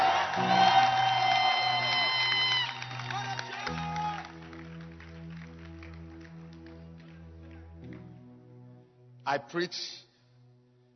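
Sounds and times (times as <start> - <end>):
audience loud hand clapping and cheering in church: 0.0 - 8.1
speech: 9.3 - 10.0.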